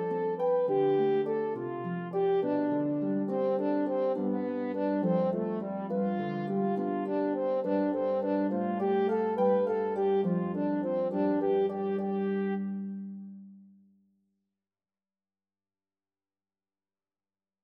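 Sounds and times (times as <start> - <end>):
horn in C playing a melody: 0.0 - 13.0
harp: 0.0 - 13.4.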